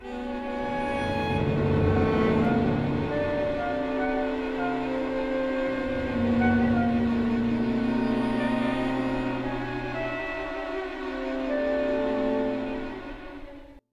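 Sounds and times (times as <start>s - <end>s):
synth pad: 0.0s - 13.7s.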